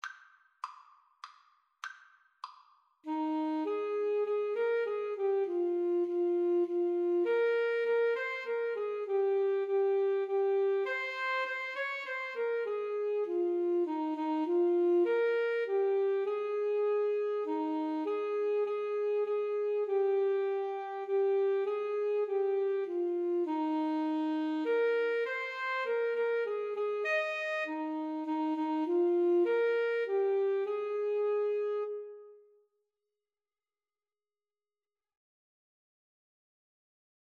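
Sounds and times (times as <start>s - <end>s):
alto saxophone duet: 3.0s - 32.6s.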